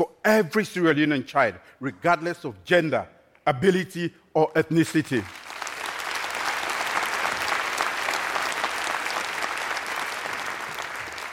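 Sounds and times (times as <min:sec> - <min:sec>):
speech: 0:00.0 - 0:05.4
audience applause: 0:05.2 - 0:11.3.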